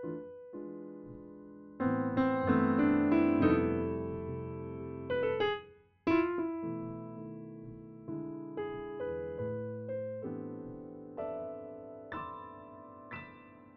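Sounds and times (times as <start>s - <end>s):
virtual white grand piano: 0.0s - 13.7s.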